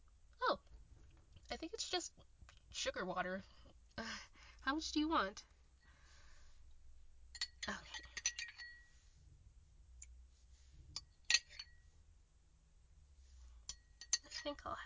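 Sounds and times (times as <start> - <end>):
low steady hum: 0.0 - 14.8
speech: 1.6 - 3.6, 4.6 - 5.5, 14.6 - 14.8
spoon clinking against a glass while stirring a drink: 7.3 - 8.9, 11.0 - 11.8, 13.7 - 14.4.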